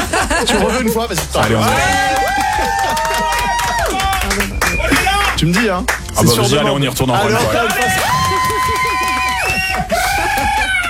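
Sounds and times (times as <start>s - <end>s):
laughter: 0.0s - 10.8s
speech: 0.4s - 3.5s, 5.4s - 8.3s
applause in the studio: 1.2s - 6.1s, 7.4s - 10.8s
voices and whoops: 1.4s - 5.4s, 7.3s - 10.8s.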